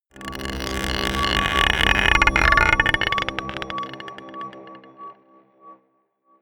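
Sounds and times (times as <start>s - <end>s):
scraping a marble pot: 0.2s - 4.8s.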